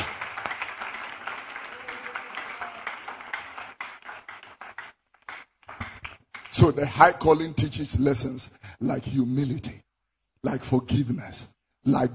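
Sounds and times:
hands clapping: 0.0 - 6.9
speech: 6.6 - 9.8, 10.4 - 12.1.

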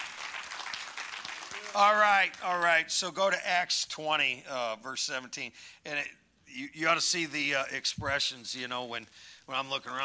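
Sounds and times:
audience applauding: 0.0 - 2.6
speech: 1.7 - 10.0.

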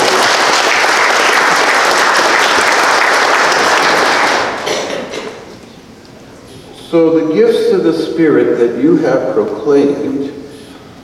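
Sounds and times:
church congregation applause: 0.0 - 5.3
speech: 6.9 - 10.4.

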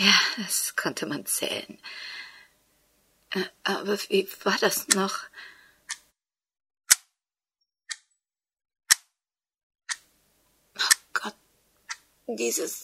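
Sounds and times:
speech: 0.0 - 2.2, 3.3 - 5.5, 10.8 - 11.4, 12.3 - 12.8
bird clock ticking: 4.6 - 5.3, 5.9 - 6.1, 6.9 - 7.1, 9.9 - 10.1, 10.8 - 12.8.

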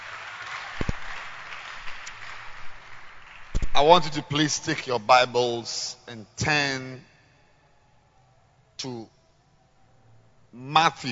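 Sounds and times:
audience clapping hands: 0.0 - 4.4
speech: 3.8 - 7.1, 8.8 - 9.2, 10.5 - 11.1.

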